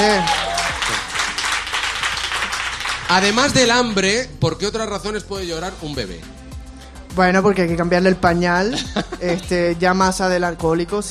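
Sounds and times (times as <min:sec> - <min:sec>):
audience applause: 0:00.0 - 0:03.9
speech: 0:03.1 - 0:06.3, 0:07.2 - 0:11.0
laughter: 0:08.6 - 0:09.6.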